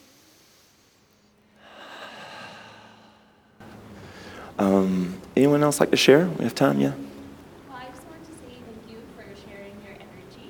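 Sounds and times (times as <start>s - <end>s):
group of people taking a big breath in together: 0.0s - 5.2s
speech: 4.6s - 7.1s.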